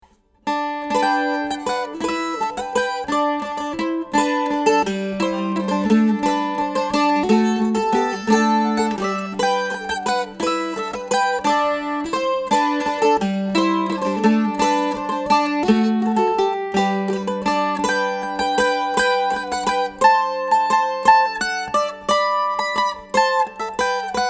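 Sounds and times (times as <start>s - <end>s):
mandolin: 0.0s - 24.2s.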